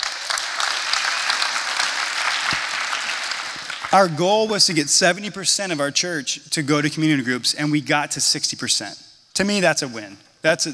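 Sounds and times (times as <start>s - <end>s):
crowd applauding: 0.0s - 4.2s
speech: 3.9s - 10.7s.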